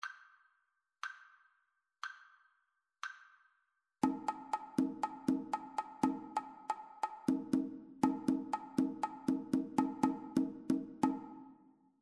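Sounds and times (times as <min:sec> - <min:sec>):
two-part rhythm: 0:04.0 - 0:11.6.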